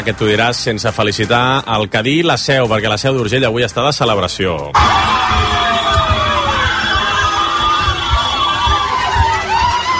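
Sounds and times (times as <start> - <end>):
speech: 0.0 - 5.6
Cadí la Seu women's basketball players cheering after qualifying: 4.8 - 9.9.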